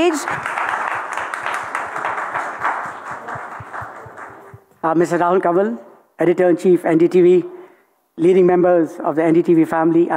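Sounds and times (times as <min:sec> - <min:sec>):
speech: 0:00.0 - 0:00.6, 0:04.8 - 0:07.6, 0:08.2 - 0:10.1
audience applause welcoming speaker on stage: 0:00.0 - 0:04.6.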